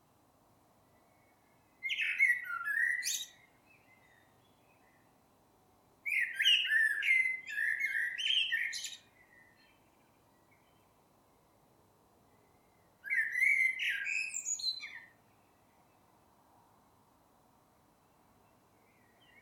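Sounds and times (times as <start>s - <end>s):
Common blackbird singing low whistled phrases: 1.2s - 5.0s, 6.0s - 10.9s, 12.6s - 15.7s, 18.8s - 19.4s.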